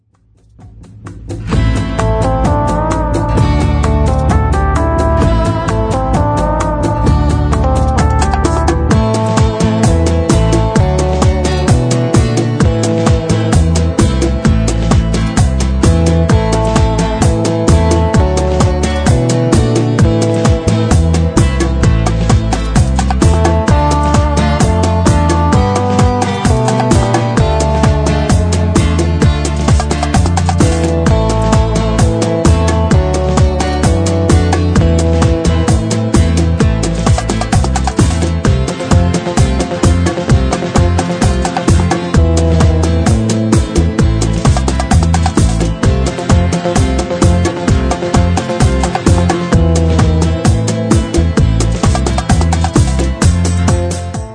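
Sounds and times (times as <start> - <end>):
bachata music: 0.5 - 54.3.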